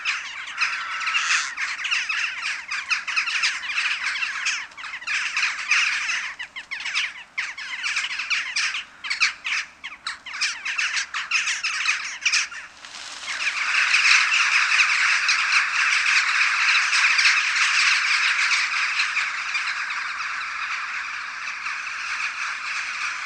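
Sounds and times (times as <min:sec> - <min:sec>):
Western jackdaw flock calling: 0:00.0 - 0:23.2.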